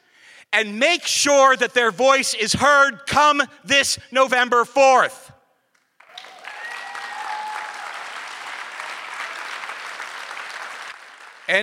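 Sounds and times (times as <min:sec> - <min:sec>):
speech: 0:00.6 - 0:05.2
audience applause: 0:06.0 - 0:11.6.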